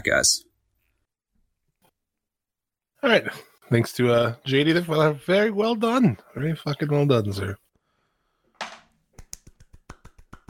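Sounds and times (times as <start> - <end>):
speech: 0.0 - 0.5, 3.0 - 7.6
hand clapping: 9.1 - 10.4.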